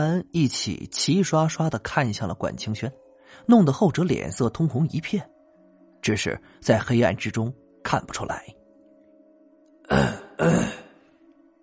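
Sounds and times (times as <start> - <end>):
speech: 0.0 - 5.3, 6.0 - 8.6, 9.9 - 10.8
person coughing awkwardly: 9.9 - 11.0.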